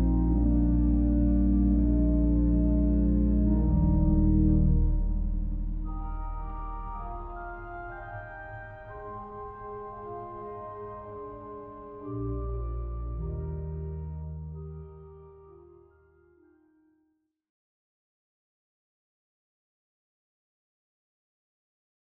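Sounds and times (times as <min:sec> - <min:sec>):
prelude in C minor: 0:00.0 - 0:16.5.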